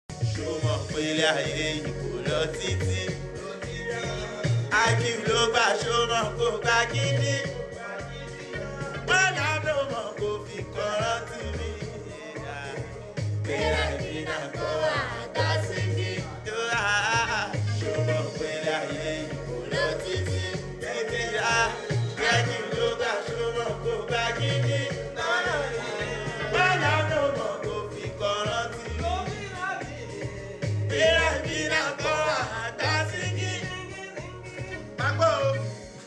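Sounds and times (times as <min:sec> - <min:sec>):
person singing: 0:00.1 - 0:36.0.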